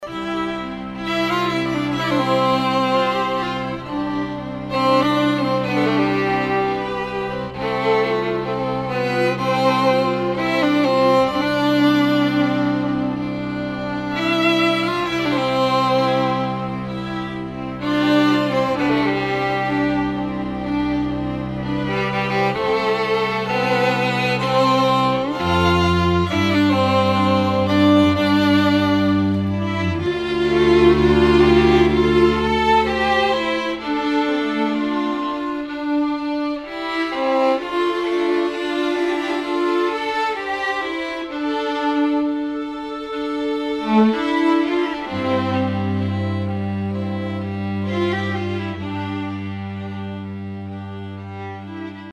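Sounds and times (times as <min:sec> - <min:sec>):
strings ceremony music: 0:00.0 - 0:52.1.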